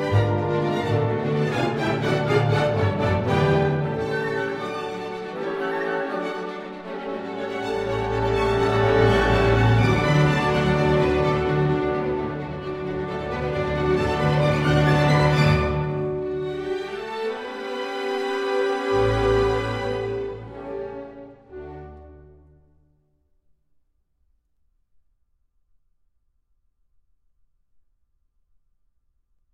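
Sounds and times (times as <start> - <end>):
lyrical waltz music: 0.0 - 22.8.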